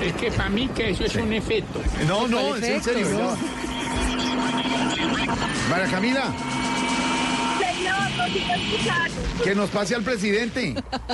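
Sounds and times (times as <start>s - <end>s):
speech: 0.0s - 3.8s, 5.2s - 6.7s, 8.2s - 11.1s
helicopter flying overhead: 0.0s - 11.1s
laughter: 10.6s - 11.1s.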